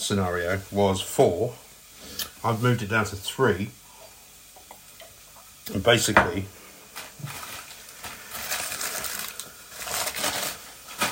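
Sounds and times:
speech: 0.1 - 1.6, 2.4 - 3.8, 5.7 - 6.6
dry parsley rustling and crackling into a cooking pot: 6.9 - 11.1.

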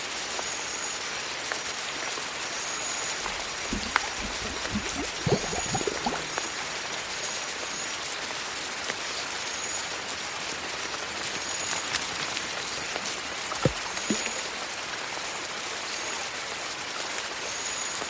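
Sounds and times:
steady hiss like light rain in a jungle swamp: 0.0 - 3.0, 6.6 - 18.0
drips and ticks: 3.2 - 6.6, 10.9 - 14.6.

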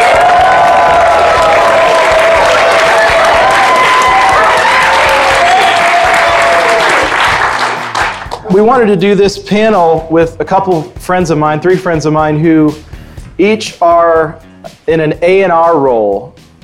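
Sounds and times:
live studio audience cheering: 0.0 - 8.5
live studio audience applauding at Music Makers Boot Camp: 0.0 - 8.6
speech: 8.6 - 16.3.

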